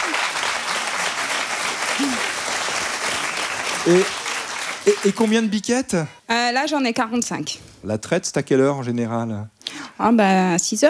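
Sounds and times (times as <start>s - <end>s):
audience applause: 0.0s - 5.6s
speech: 3.8s - 4.2s, 4.8s - 10.8s.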